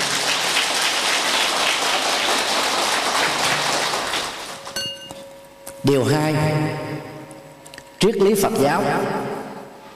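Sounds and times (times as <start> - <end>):
loud audience applause: 0.0 - 4.8
speech: 5.8 - 7.0, 8.0 - 9.3.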